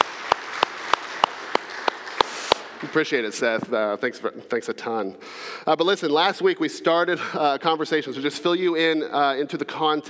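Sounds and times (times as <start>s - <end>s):
sharp crisp claps: 0.0s - 3.6s
speech: 2.8s - 10.0s.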